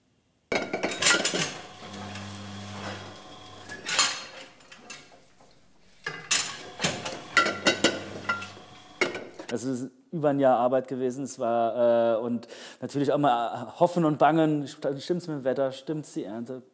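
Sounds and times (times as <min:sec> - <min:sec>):
glasses clinking at a winery on an old manor estate: 0:00.5 - 0:09.5
speech: 0:09.5 - 0:16.7.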